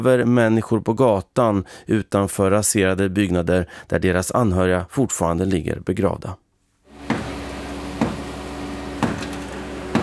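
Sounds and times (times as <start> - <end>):
speech: 0.0 - 6.4
hammer banging on concrete of a collapsed house in La Guaira: 7.0 - 8.3, 9.0 - 10.0.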